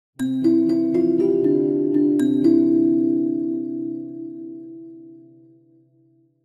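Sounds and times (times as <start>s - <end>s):
ringtone: 0.2s - 4.5s.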